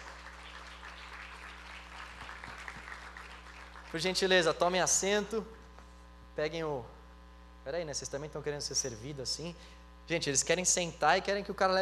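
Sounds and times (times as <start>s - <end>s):
audience applauding: 0.0s - 4.3s
speech: 3.9s - 5.6s, 6.4s - 7.0s, 7.6s - 11.8s.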